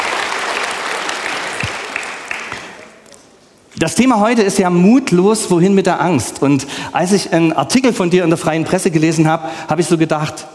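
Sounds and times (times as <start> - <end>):
applause: 0.0 - 3.0
speech: 3.8 - 10.5.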